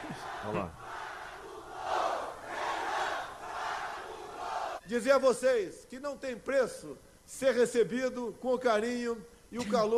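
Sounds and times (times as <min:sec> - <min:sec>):
large crowd shouting a chant: 0:00.0 - 0:04.8
speech: 0:00.4 - 0:00.8, 0:04.9 - 0:09.9.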